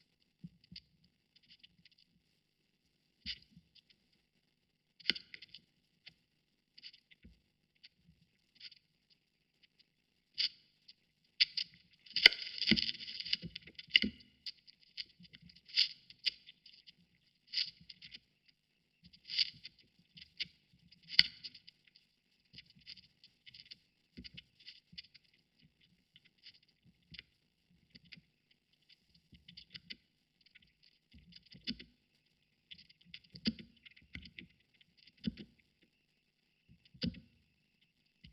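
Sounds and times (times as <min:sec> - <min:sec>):
vinyl record noise recorded with Rode NT4 microphone: 0:00.0 - 0:38.3.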